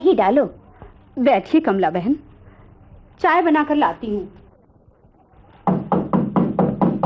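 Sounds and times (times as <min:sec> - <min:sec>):
speech: 0:00.1 - 0:00.6, 0:01.2 - 0:02.3, 0:03.2 - 0:04.4
knocking on a door: 0:05.7 - 0:07.0.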